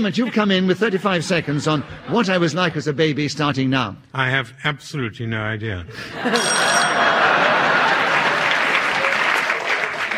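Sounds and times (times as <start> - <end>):
laughter: 0.0 - 3.2, 5.9 - 10.1
speech: 0.0 - 7.2
audience applause: 7.1 - 10.1.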